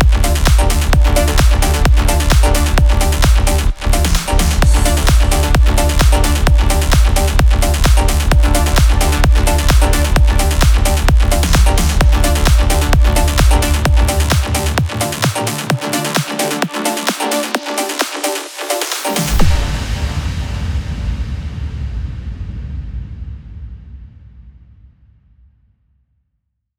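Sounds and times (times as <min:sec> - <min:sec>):
trance music: 0:00.0 - 0:21.2.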